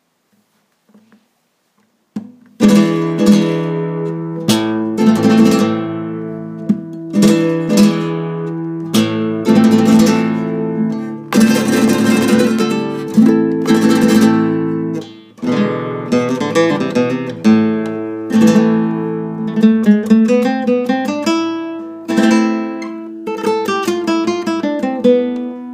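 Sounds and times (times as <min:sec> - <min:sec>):
flamenco farruca music: 0:02.1 - 0:25.7.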